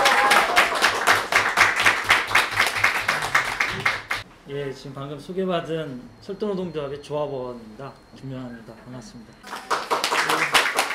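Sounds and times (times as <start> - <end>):
audience applause welcoming a speaker to a lecture at a workers' school: 0.0 - 4.2, 9.4 - 10.9
speech: 4.5 - 9.6.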